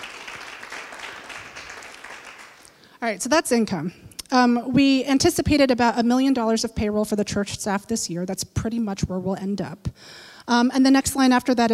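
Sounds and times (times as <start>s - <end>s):
audience applause: 0.0s - 2.7s
speech: 3.0s - 11.7s.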